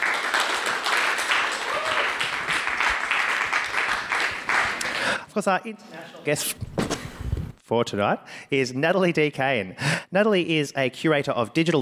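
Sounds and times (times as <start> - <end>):
round of applause: 0.0 - 5.2
speech: 5.4 - 6.8, 7.7 - 11.8.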